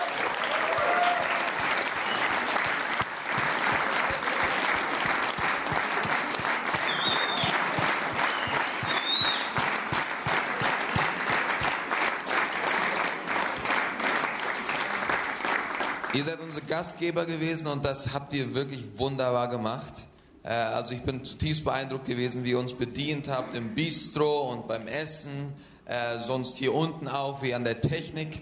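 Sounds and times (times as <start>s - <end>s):
faint cheers and whistles: 0.0s - 2.6s, 6.7s - 9.7s
large crowd audience applause: 0.0s - 16.6s
speech: 16.7s - 28.4s.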